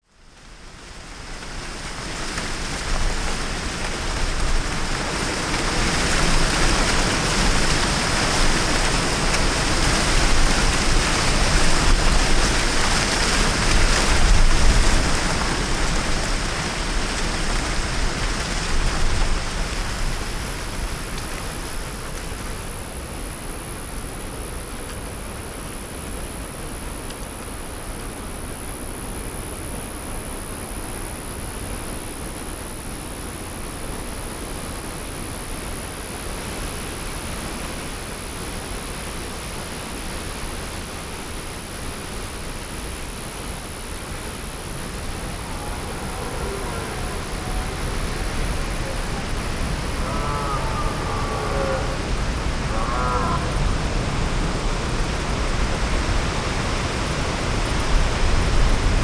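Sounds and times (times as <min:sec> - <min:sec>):
wind: 0:00.0 - 0:59.0
deer: 0:44.8 - 0:53.7.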